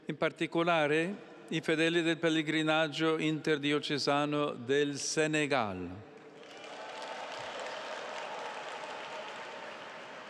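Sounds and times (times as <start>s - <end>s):
speech: 0.1s - 6.1s
pilgrims applauding: 6.4s - 10.2s.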